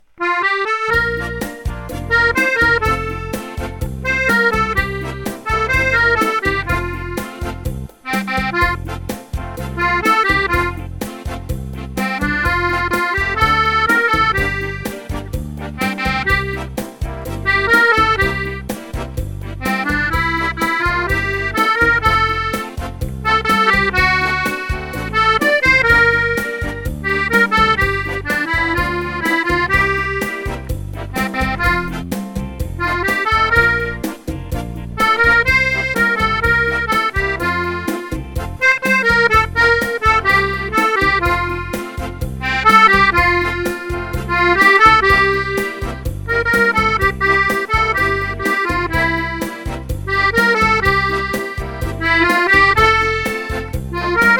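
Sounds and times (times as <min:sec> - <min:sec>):
cha cha music: 0:00.0 - 0:54.3.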